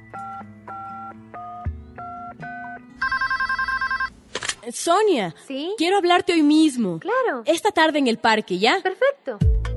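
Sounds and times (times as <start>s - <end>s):
telephone dialing tones of an outgoing call: 0.0s - 4.1s
telephone trilling ring of an outgoing call: 0.0s - 4.1s
speech: 4.7s - 9.6s.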